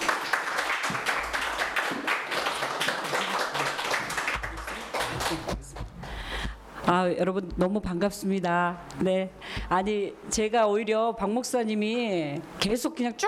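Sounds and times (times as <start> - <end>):
audience applause: 0.0 - 5.8
speech: 6.9 - 13.2.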